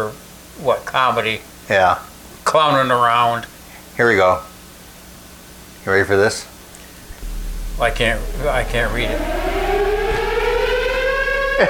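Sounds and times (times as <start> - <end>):
speech: 0.0 - 4.5, 5.8 - 6.5, 7.8 - 9.5
air raid siren wailing: 7.1 - 11.6.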